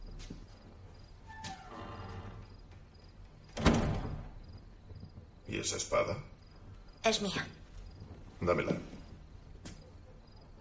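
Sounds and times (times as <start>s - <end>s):
door rattling, scraping and shutting with a thump: 1.3s - 2.7s, 3.4s - 4.5s
speech: 5.6s - 6.3s, 7.0s - 7.6s, 8.4s - 8.9s.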